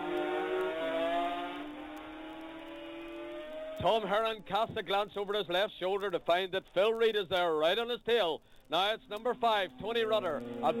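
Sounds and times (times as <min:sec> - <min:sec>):
two racing motorcycles passing at Ballacrane during a road race: 0:00.0 - 0:03.8, 0:10.2 - 0:10.7
speech: 0:03.8 - 0:10.7.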